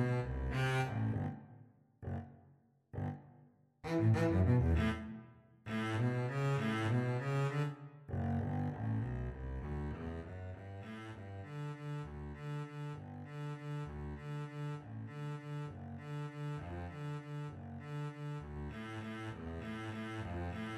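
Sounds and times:
violin: 0.0 - 1.2, 3.8 - 7.8, 10.8 - 20.7
double bass: 0.0 - 1.4, 3.8 - 20.7.

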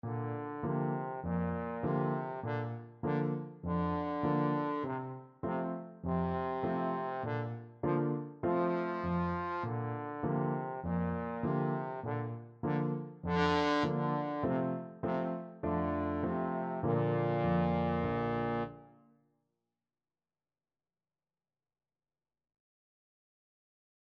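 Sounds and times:
trombone: 0.0 - 18.9.

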